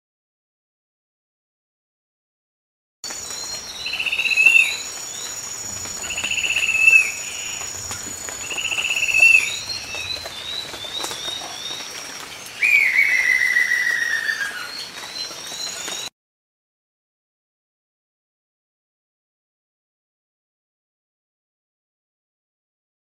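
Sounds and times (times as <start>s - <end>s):
choca bird singing: 3.1s - 16.1s.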